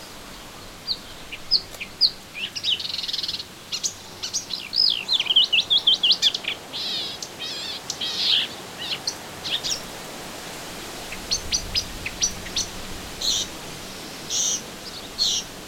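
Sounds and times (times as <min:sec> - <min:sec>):
melodious warbler song: 0:00.0 - 0:10.0, 0:11.0 - 0:15.6.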